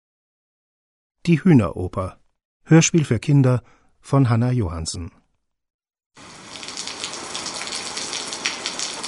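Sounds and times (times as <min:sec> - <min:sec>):
speech: 0:01.2 - 0:05.2
heavy rain pouring: 0:06.2 - 0:09.0
water splashing and dripping: 0:06.2 - 0:09.0.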